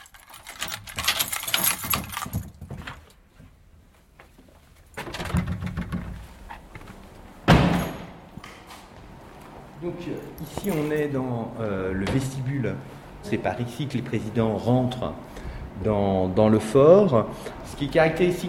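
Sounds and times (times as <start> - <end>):
door rattling open: 0.0 - 3.0, 5.0 - 6.3
shuffling of people going in: 2.0 - 5.0, 6.1 - 13.2
door shutting with a heavy thud: 7.4 - 8.2
speech: 9.8 - 18.4.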